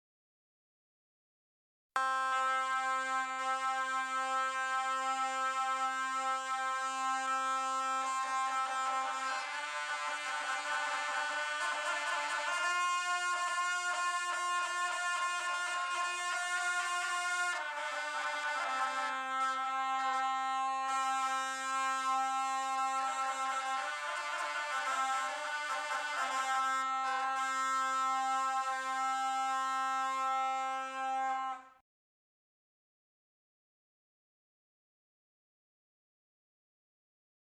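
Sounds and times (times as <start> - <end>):
Tibetan horn blowing: 2.0 - 31.8.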